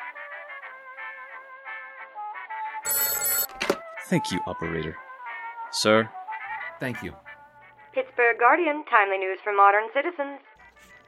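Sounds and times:
desk bell ringing: 2.9 - 3.7
speech: 4.1 - 5.0, 5.7 - 6.2, 6.8 - 7.2, 8.2 - 10.5.

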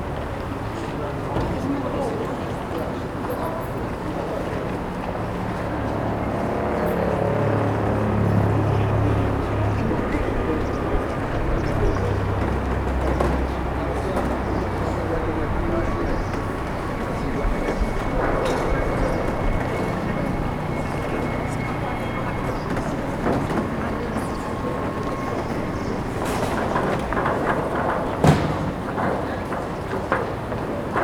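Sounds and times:
High Street traffic: 0.0 - 31.0
voices murmuring: 0.0 - 31.0
low engine rumble: 4.6 - 31.0
market set-up clatters and knocks: 10.6 - 31.0.

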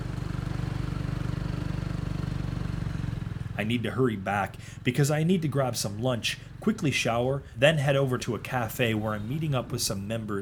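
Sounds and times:
tuk-tuk engine running: 0.0 - 10.3
speech: 3.6 - 10.3.

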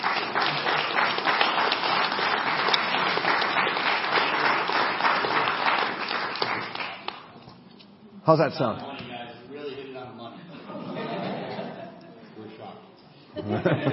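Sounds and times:
church audience applauding a guest speaker: 0.0 - 7.3
speech: 8.3 - 8.9, 13.6 - 13.9
laughter: 10.4 - 12.4, 13.3 - 13.9.

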